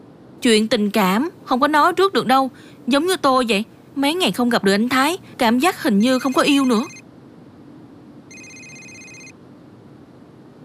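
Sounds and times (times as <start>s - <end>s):
low hiss: 0.0s - 10.6s
speech: 0.4s - 7.0s
telephone ringing with an incoming call: 6.0s - 7.0s, 8.3s - 9.4s.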